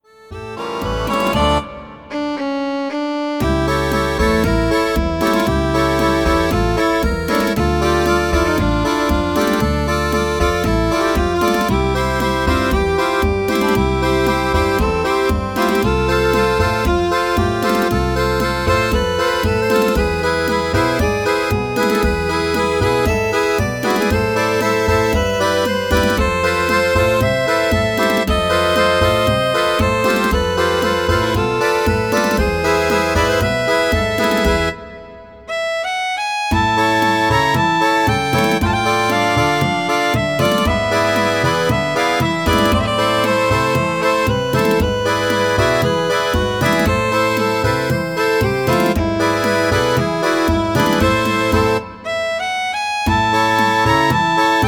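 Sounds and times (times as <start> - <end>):
synth tango music: 0.0 - 54.6.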